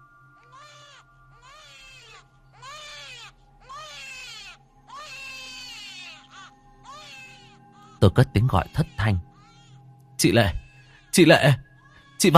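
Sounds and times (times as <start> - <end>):
baby crying: 0.4 - 9.8, 10.4 - 12.3
speech: 8.0 - 9.3, 10.2 - 11.6, 12.2 - 12.3.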